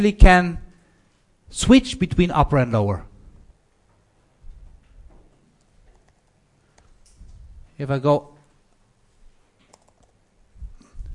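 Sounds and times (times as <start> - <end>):
speech: 0.0 - 0.6, 1.5 - 3.1, 7.8 - 8.3
faint typing on a computer keyboard: 5.6 - 6.9, 9.6 - 10.3.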